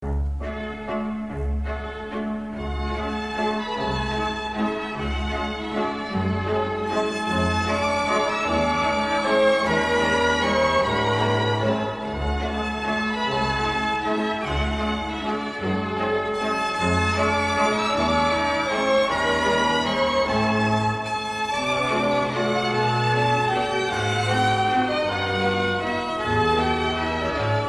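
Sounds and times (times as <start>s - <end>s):
waltz music: 0.0s - 27.6s.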